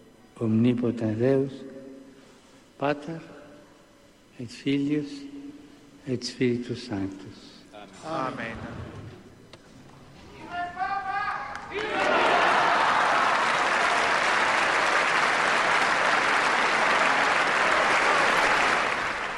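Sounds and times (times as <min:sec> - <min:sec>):
speech: 0:00.4 - 0:01.7, 0:02.8 - 0:03.4, 0:04.4 - 0:05.3, 0:06.0 - 0:08.9
crowd applause after papal blessing: 0:11.5 - 0:19.3.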